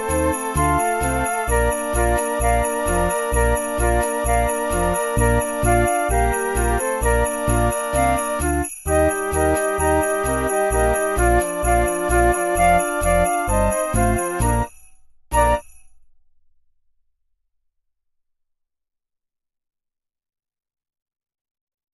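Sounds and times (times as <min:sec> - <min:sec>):
classic festive song: 0:00.0 - 0:16.0.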